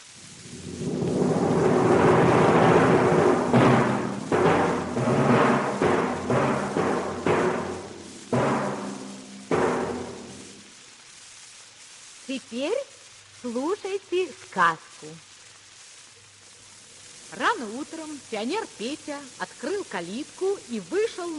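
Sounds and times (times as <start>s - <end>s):
timpani and bass drum imitating hunters' gunshots: 0.5s - 10.8s
speech: 12.5s - 15.3s, 17.3s - 21.3s.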